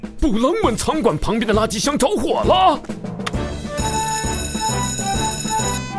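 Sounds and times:
speech: 0:00.3 - 0:03.1
alarm bell ringing: 0:03.8 - 0:05.8.

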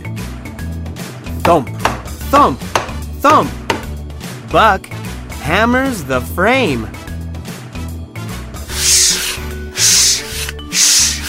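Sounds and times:
speech: 0:01.5 - 0:03.6, 0:04.5 - 0:07.0
sanding wood smooth: 0:08.7 - 0:11.2.

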